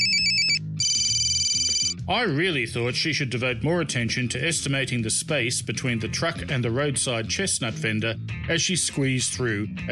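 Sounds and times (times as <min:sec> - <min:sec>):
mobile phone ringing with high electronic trill: 0:00.0 - 0:02.0
speech: 0:02.1 - 0:09.9.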